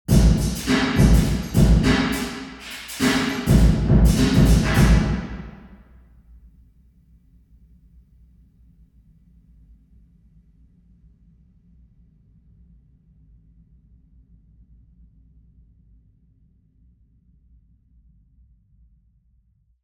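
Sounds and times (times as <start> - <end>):
drum in a parish church: 0.1 - 5.7.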